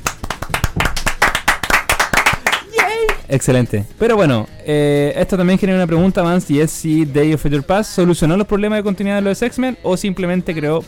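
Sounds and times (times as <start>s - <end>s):
hand clapping in applause for director Bryan Singer: 0.0s - 3.3s
speech: 3.3s - 10.8s.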